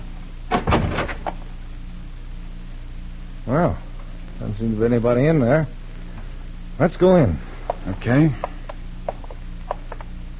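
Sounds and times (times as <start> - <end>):
low steady hum: 0.0 - 10.3
wooden shack door being pulled open: 0.5 - 1.4
speech: 3.5 - 3.8, 4.5 - 5.8, 6.8 - 8.5.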